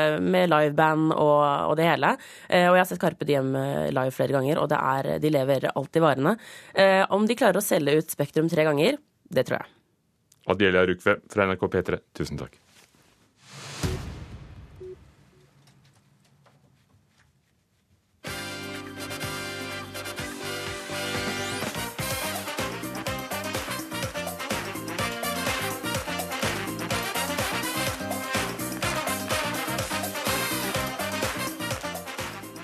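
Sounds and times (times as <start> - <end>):
speech: 0.0 - 9.8, 10.4 - 12.6
TV dance show intro music: 13.4 - 15.6, 18.2 - 32.6.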